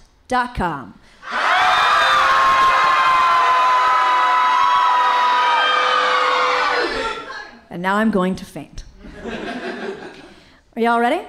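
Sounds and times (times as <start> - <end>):
speech: 0.3 - 1.2, 7.7 - 9.4, 10.8 - 11.2
live audience screaming and cheering: 1.2 - 7.5
laughter: 9.0 - 10.4.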